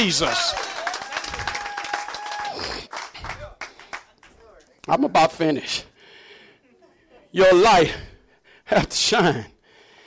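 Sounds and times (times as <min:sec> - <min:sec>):
speech: 0:00.0 - 0:00.7, 0:04.9 - 0:05.9, 0:07.3 - 0:08.1, 0:08.7 - 0:09.5
crowd clapping hands: 0:00.0 - 0:04.7.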